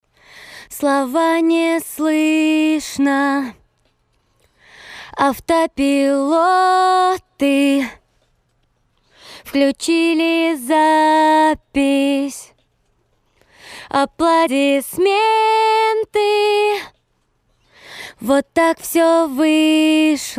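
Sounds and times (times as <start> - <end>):
a cappella singing: 0.6 - 3.6, 5.1 - 8.0, 9.4 - 12.5, 13.8 - 16.9, 18.1 - 20.3.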